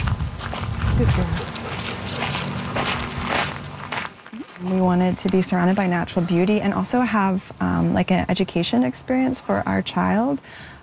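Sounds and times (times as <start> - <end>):
footsteps of people walking their dog in nature: 0.0 - 6.5
speech: 1.0 - 1.6, 4.6 - 10.7.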